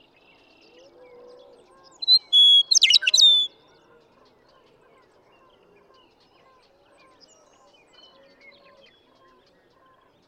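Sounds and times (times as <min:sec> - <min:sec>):
western meadowlark song: 0:01.9 - 0:03.6.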